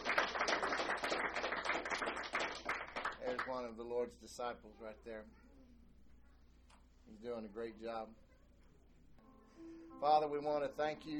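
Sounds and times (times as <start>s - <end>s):
audience hand clapping: 0.0s - 3.6s
speech: 3.4s - 5.4s, 7.1s - 8.2s, 9.6s - 11.1s.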